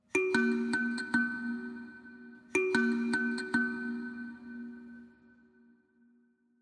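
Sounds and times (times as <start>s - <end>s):
kalimba layer: 0.1s - 5.2s.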